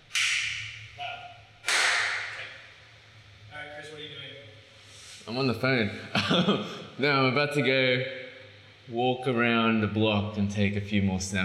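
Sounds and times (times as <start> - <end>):
single hand clap: 0.1 - 0.7, 1.6 - 2.5
speech: 5.3 - 8.2, 8.9 - 11.4
laughter: 6.0 - 7.0.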